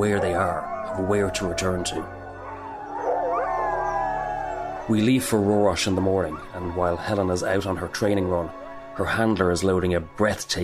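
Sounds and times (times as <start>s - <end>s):
speech: 0.0s - 2.2s, 4.9s - 10.6s
pack of sled dogs howling in chorus: 0.0s - 9.8s.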